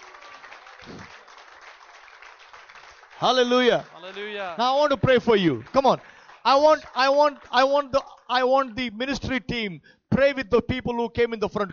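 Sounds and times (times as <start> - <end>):
audience clapping: 0.0 - 8.8
speech: 3.2 - 11.7.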